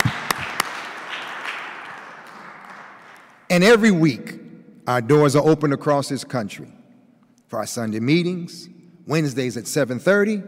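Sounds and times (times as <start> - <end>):
audience applause: 0.0 - 3.4
speech: 3.6 - 6.8, 7.5 - 10.4.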